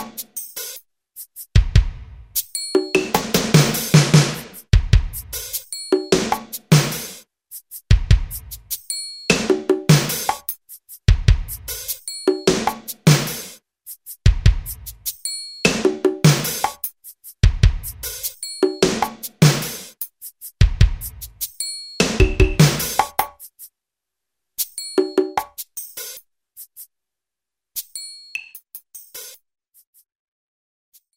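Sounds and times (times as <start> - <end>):
New Age drum machine preset pattern: 0.0 - 23.7.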